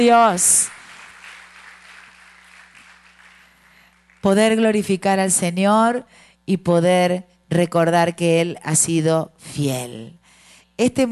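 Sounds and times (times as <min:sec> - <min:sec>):
speech: 0:00.0 - 0:00.8, 0:04.2 - 0:10.2, 0:10.8 - 0:11.1
audience applauding: 0:00.0 - 0:04.4.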